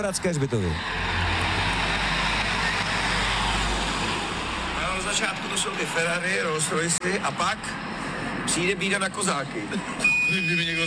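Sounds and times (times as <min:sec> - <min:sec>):
speech: 0:00.0 - 0:01.2, 0:05.1 - 0:10.8
tram arriving at a stop: 0:00.3 - 0:10.8.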